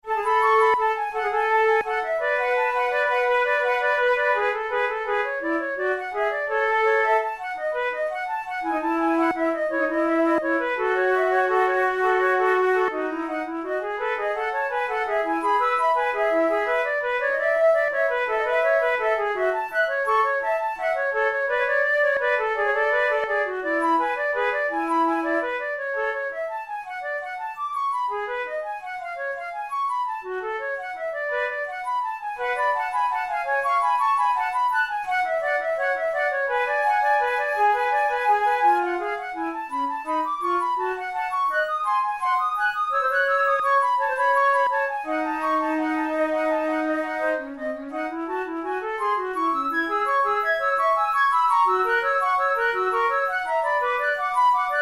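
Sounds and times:
flute in A major: 0.0s - 54.8s.

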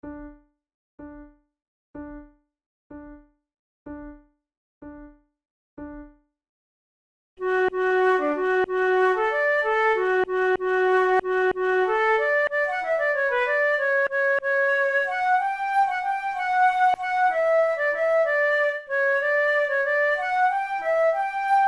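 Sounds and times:
flute duet playing tunes: 7.4s - 21.6s.

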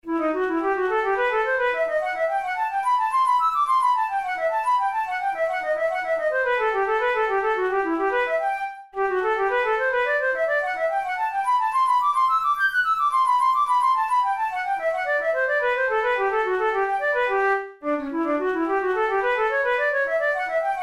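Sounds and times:
studies for the Boehm flute: 0.0s - 20.8s.

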